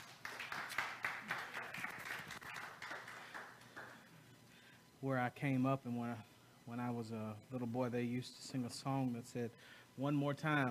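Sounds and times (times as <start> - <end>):
audience hand clapping: 0.0 - 4.0
speech: 5.0 - 10.6.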